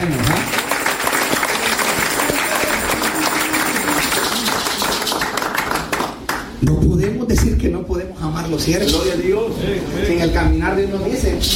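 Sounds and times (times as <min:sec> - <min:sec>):
audience applause: 0:00.0 - 0:06.6
speech: 0:06.6 - 0:11.5.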